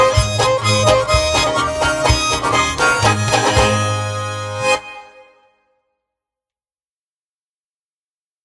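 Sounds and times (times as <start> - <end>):
schottische folk dance music: 0.0 - 5.6.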